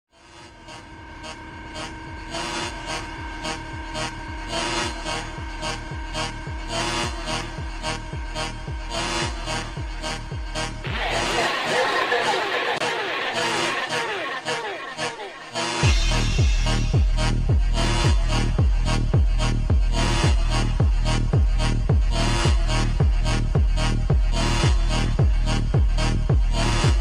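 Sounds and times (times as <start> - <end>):
super slowed music with reverb: 0.2 - 26.9
laughter: 10.8 - 15.8.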